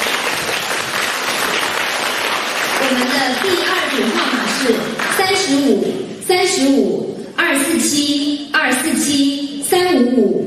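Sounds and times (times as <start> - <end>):
audience applause: 0.0 - 5.2
speech: 2.8 - 10.4.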